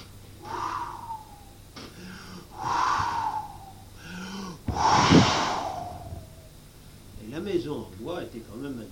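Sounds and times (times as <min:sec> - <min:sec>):
voice imitating a wolf blowing hard: 0:00.4 - 0:01.6, 0:02.4 - 0:06.6
quick intakes of breath: 0:00.4 - 0:06.5.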